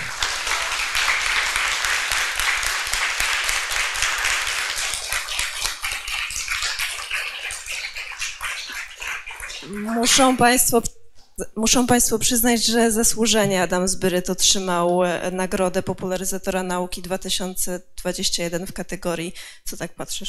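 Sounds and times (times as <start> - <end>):
applause: 0.0 - 9.6
speech: 10.0 - 20.2.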